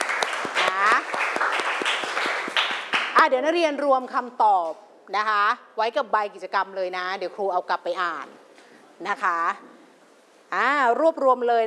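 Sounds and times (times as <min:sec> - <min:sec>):
classmates clapping: 0:00.0 - 0:03.3
speech: 0:03.2 - 0:08.4, 0:09.0 - 0:09.7, 0:10.5 - 0:11.6.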